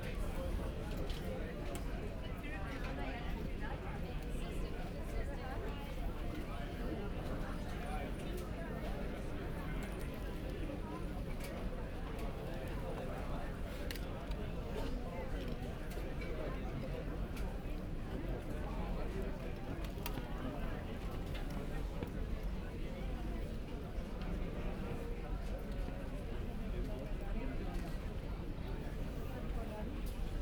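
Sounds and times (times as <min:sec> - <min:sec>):
airport terminal hall ambience in Istanbul: 0:00.0 - 0:30.4.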